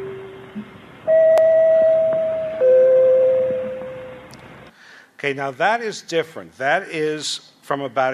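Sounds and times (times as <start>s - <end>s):
hand-struck three-note broadcast chimes: 1.1s - 4.3s
speech: 5.2s - 8.1s.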